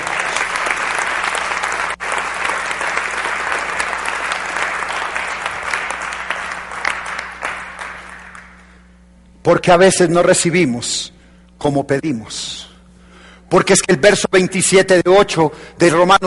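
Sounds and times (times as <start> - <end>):
loud audience applause: 0.0 - 8.7
speech: 9.5 - 12.7, 13.5 - 16.2.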